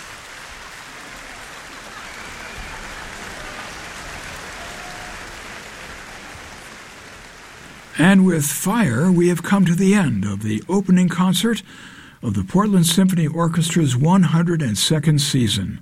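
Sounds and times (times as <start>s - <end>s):
standing ovation at a symphony orchestra's opening concert: 0.0s - 9.8s
speech: 8.0s - 15.7s.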